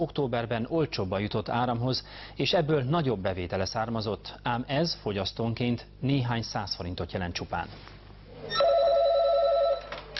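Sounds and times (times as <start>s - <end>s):
speech: 0.0s - 8.6s
telephone ringing in a charity service's office in Szeged: 8.5s - 9.9s.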